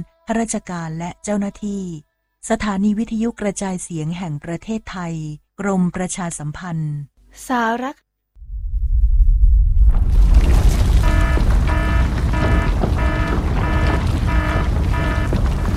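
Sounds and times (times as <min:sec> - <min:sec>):
speech: 0:00.0 - 0:08.0
earthquake rumbling: 0:08.4 - 0:15.7.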